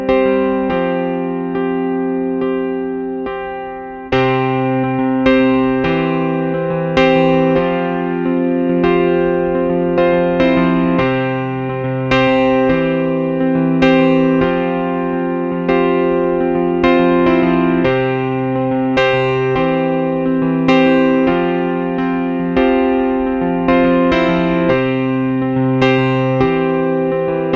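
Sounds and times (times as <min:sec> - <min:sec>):
electric piano pop ambient ballad: 0:00.0 - 0:27.5.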